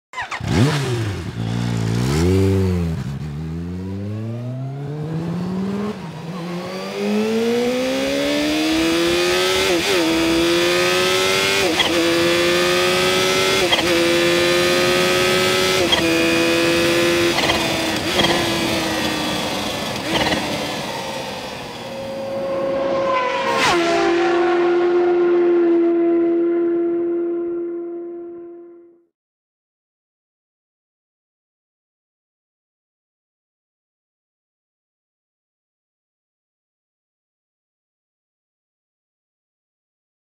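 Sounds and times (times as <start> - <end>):
Kawasaki Ninja H2 motorcycle sound: 0.1 - 29.0.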